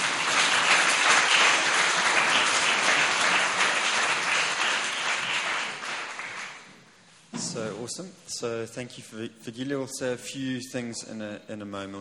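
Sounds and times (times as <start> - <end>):
audience hand clapping: 0.0 - 6.8
speech: 7.9 - 11.9.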